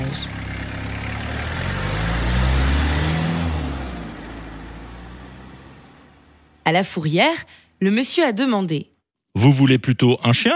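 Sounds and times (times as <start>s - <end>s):
van engine pulling out of garage: 0.0s - 7.8s
speech: 6.7s - 10.5s.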